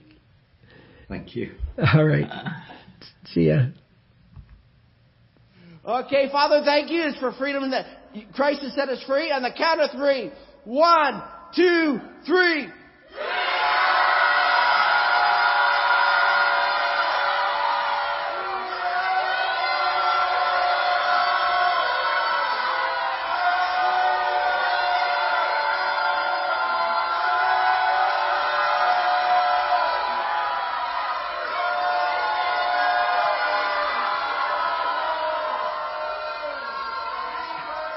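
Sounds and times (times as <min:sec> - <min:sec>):
speech: 0:01.1 - 0:03.8, 0:05.8 - 0:13.4
crowd roaring and cheering: 0:13.1 - 0:37.9.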